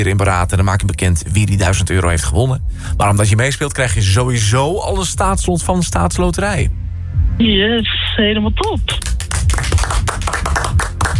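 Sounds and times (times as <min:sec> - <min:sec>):
speech: 0:00.0 - 0:09.1
weak, lukewarm applause at a game show: 0:08.6 - 0:11.1.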